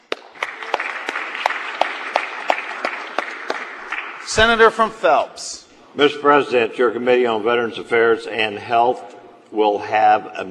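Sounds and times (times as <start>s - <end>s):
applause in a Senate chamber welcoming a senator's guests: 0.0s - 4.7s
speech: 4.3s - 10.4s.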